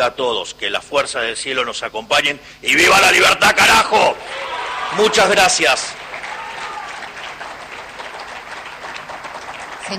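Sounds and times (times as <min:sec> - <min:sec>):
speech: 0:00.0 - 0:06.1
audience applause: 0:04.3 - 0:09.9.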